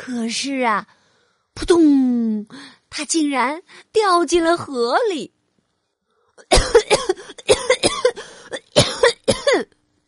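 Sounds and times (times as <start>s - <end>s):
speech: 0.1s - 1.0s, 1.6s - 5.4s
person coughing after choking on water: 6.4s - 9.8s.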